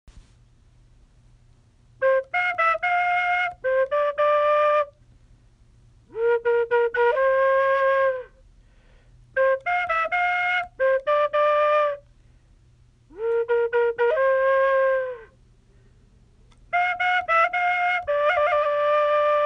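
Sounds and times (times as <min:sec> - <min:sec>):
bamboo flute: 0:02.0 - 0:05.0, 0:06.1 - 0:08.4, 0:09.3 - 0:12.1, 0:13.1 - 0:15.4, 0:16.7 - 0:19.4.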